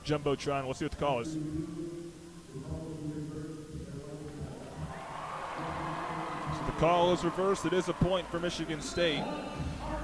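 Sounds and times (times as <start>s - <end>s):
speech: 0.0s - 3.2s, 6.8s - 9.7s
arena crowd reacting to replay: 4.5s - 10.0s.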